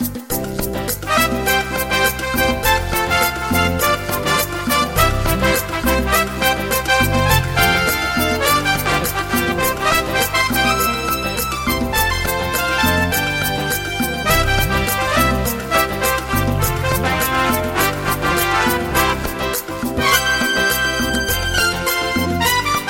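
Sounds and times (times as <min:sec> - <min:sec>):
latin pop: 0:00.0 - 0:22.8.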